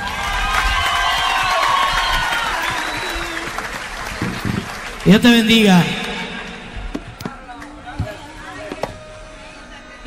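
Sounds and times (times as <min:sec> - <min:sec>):
audience applause and cheering: 0:00.0 - 0:07.7
speech: 0:05.1 - 0:06.0.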